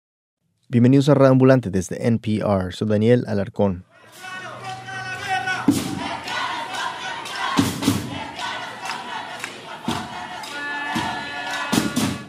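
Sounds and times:
speech: 0.7 - 3.9
crowd of over 100 people chanting: 3.8 - 12.2.

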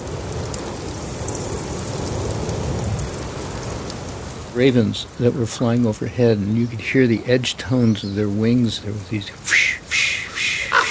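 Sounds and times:
breeze in the canopy of the redwoods: 0.0 - 10.8
speech: 4.6 - 9.8.

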